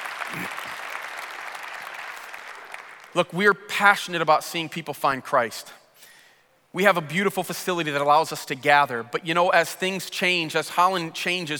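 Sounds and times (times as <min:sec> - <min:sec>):
audience applause: 0:00.0 - 0:03.1
speech: 0:00.3 - 0:00.6, 0:03.1 - 0:05.8, 0:06.8 - 0:11.5.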